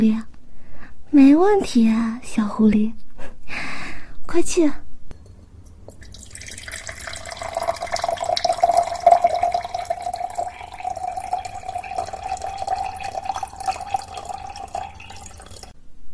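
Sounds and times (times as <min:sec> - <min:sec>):
speech: 0:00.0 - 0:00.3, 0:01.1 - 0:04.8
water pouring into glass: 0:05.2 - 0:15.8.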